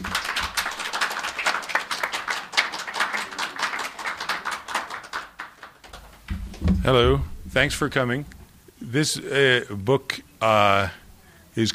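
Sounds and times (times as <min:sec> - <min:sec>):
audience applause welcoming an author at a book discussion and signing: 0:00.0 - 0:06.3
speech: 0:06.8 - 0:11.0, 0:11.6 - 0:11.7.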